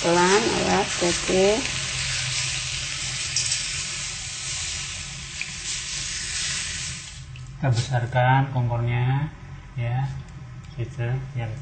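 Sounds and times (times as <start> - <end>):
speech: 0.0 - 1.8, 7.6 - 11.6
faint sizzling: 0.0 - 8.1
coconut milk poured into a cooking pan: 0.8 - 7.5.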